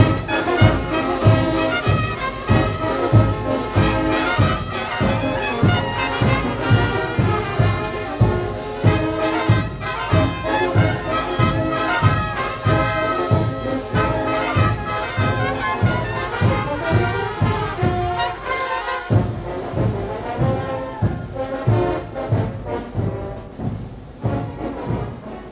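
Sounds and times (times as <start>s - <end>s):
brass band playing in the street: 0.0s - 25.4s.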